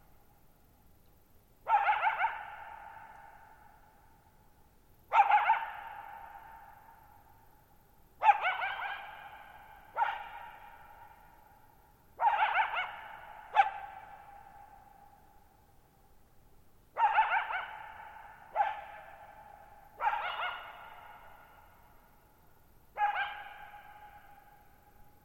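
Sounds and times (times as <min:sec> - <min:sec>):
coyote barking: 0:01.7 - 0:03.4, 0:05.1 - 0:06.8, 0:08.2 - 0:11.3, 0:12.2 - 0:14.8, 0:16.9 - 0:21.8, 0:22.9 - 0:24.6.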